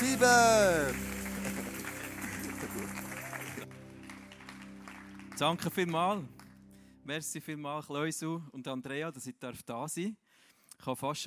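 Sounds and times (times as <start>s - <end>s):
audience applause: 0.0s - 6.5s
speech: 0.2s - 1.1s, 5.4s - 6.4s, 7.1s - 10.2s, 10.8s - 11.2s.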